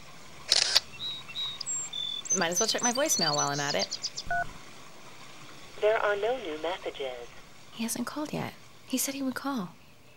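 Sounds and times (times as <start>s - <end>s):
cell phone camera shutter snap: 0.5s - 0.9s
speech: 2.3s - 4.6s, 5.8s - 9.8s.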